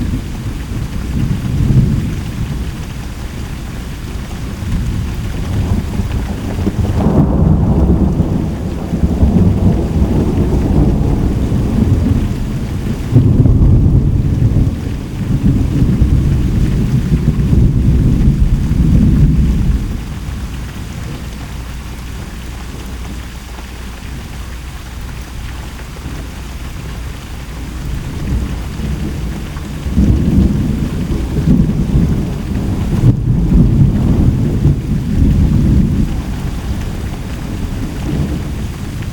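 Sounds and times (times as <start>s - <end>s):
thunder: 0.0s - 2.7s, 4.2s - 21.2s, 27.6s - 39.1s.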